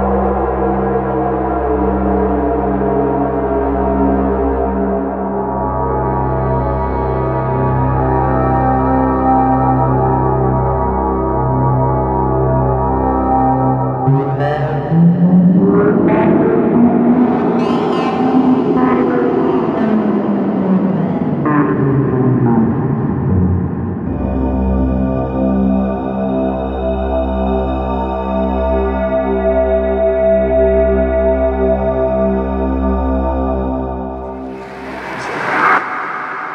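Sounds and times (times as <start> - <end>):
massive alien world soundscape: 0.0 - 36.5.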